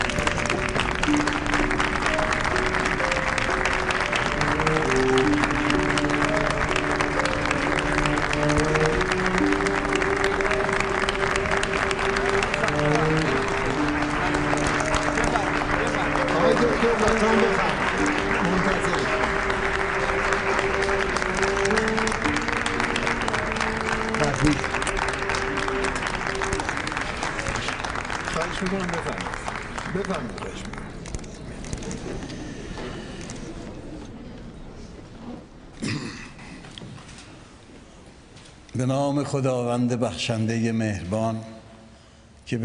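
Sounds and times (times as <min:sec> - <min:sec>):
sustained musical tones: 0:00.0 - 0:30.4
audience applause: 0:00.0 - 0:32.4
speech: 0:39.3 - 0:41.5, 0:42.5 - 0:42.6.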